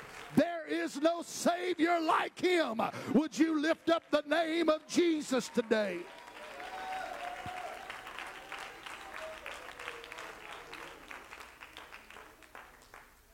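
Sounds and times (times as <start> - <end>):
audience clapping: 0.0 - 0.4, 3.8 - 13.3
speech: 0.3 - 6.2.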